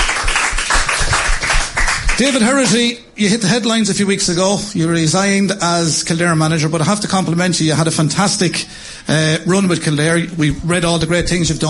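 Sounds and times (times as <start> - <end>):
crowd applause: 0.0 - 2.5
speech: 2.2 - 11.6.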